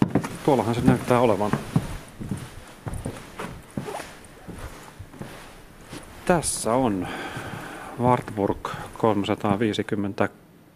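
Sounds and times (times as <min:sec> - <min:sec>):
footsteps climbing a staircase to an upper floor: 0:00.0 - 0:09.2
speech: 0:00.5 - 0:01.8, 0:06.3 - 0:07.3, 0:08.0 - 0:10.4.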